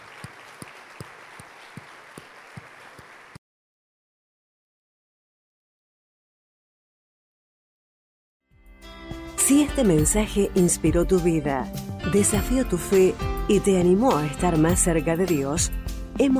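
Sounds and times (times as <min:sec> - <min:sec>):
audience applause: 0:00.0 - 0:03.4
speech: 0:09.5 - 0:16.3.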